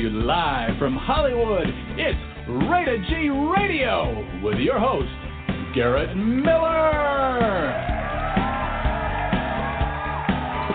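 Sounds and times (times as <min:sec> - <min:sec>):
speech: 0:00.0 - 0:07.9
loud audience applause and clapping: 0:07.6 - 0:10.7.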